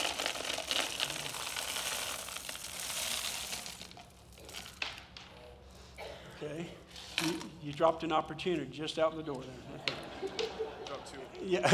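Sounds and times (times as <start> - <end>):
small hard objects pouring into a container: 0.0 - 4.8
speech: 6.4 - 10.4, 11.1 - 11.7
laughter: 9.0 - 11.7.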